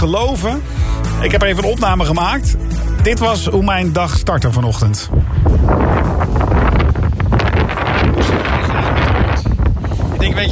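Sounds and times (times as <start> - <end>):
speech: 0.0 - 5.9
strong wind buffeting the microphone during a wet morning dog walk: 5.1 - 10.4.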